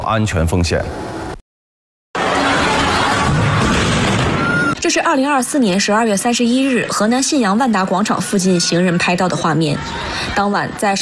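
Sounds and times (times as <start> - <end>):
speech: 0.1 - 1.2, 4.9 - 11.0
hydrogen balloon bursting into flames: 3.0 - 4.8.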